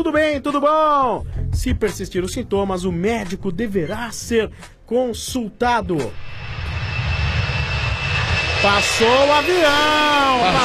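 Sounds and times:
speech: 0:00.0 - 0:06.6, 0:08.6 - 0:10.6
airplane passing overhead: 0:06.0 - 0:10.6.

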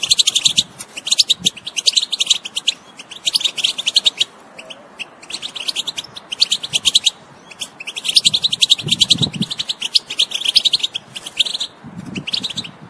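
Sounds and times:
wild European goldfinch song of twittering chirps and trills: 0:00.0 - 0:12.8.

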